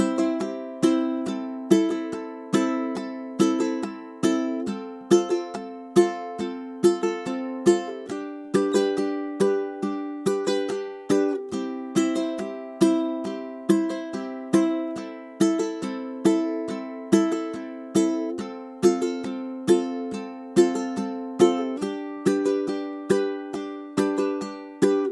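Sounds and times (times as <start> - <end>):
ukulele strumming: 0.0 - 25.1.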